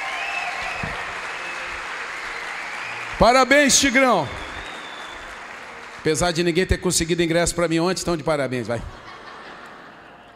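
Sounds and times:
audience applause: 0:00.0 - 0:08.2
speech: 0:03.2 - 0:04.4, 0:06.0 - 0:09.0
laughter: 0:08.6 - 0:10.3.

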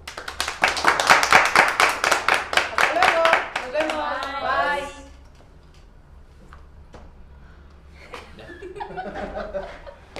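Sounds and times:
applause: 0:00.0 - 0:04.3
laughter: 0:08.0 - 0:10.1.

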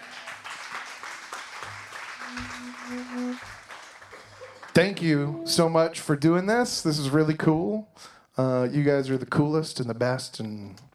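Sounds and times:
audience clapping: 0:00.0 - 0:05.8
speech: 0:02.3 - 0:03.6, 0:04.8 - 0:10.9.

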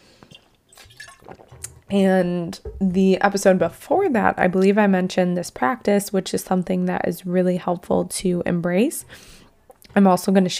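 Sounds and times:
sipping water from a glass: 0:00.0 - 0:03.6
speech: 0:01.3 - 0:09.4, 0:10.0 - 0:10.5.

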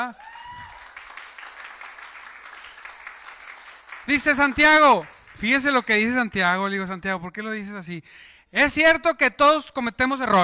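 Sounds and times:
speech: 0:00.0 - 0:00.3, 0:04.1 - 0:10.4
audience applause: 0:00.0 - 0:06.3.

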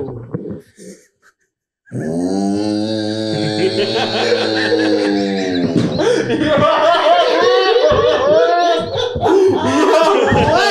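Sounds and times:
speech: 0:01.9 - 0:03.0
person imitating a cow moo: 0:01.9 - 0:05.8
short vocal sounds: 0:01.9 - 0:06.1
laughter: 0:03.2 - 0:10.6.

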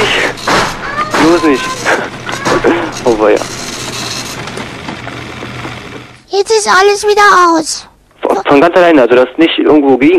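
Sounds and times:
printer running: 0:00.0 - 0:06.2
speech: 0:01.3 - 0:03.6, 0:06.4 - 0:10.1
laughter: 0:02.4 - 0:03.0.

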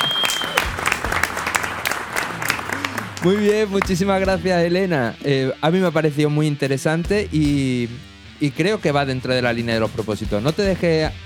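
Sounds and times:
audience applause: 0:00.0 - 0:04.0
speech: 0:03.2 - 0:11.2.

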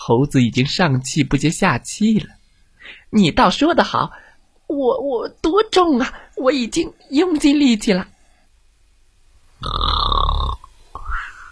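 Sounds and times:
speech: 0:00.1 - 0:08.1, 0:09.6 - 0:10.0
person imitating a hippo snoring: 0:09.6 - 0:11.4.

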